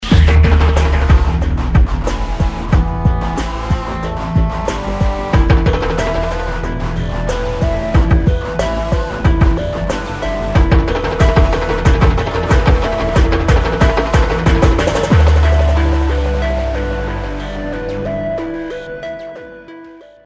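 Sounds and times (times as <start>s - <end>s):
TV ad music: 0.0s - 19.9s.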